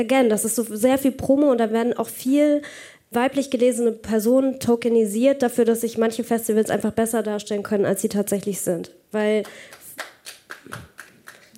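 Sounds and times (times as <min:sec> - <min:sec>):
speech: 0:00.0 - 0:10.9
audience applause: 0:09.5 - 0:11.5.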